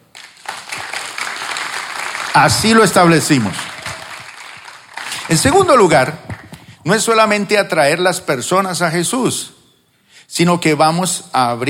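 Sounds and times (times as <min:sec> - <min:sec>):
audience applause: 0:00.0 - 0:06.6
speech: 0:02.4 - 0:03.7, 0:05.3 - 0:09.5, 0:10.3 - 0:11.6.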